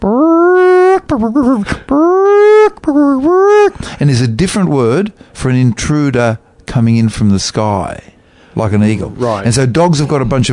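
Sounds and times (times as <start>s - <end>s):
person imitating a chicken's ground-predator alarm call: 0.0s - 3.8s
speech: 1.1s - 10.5s.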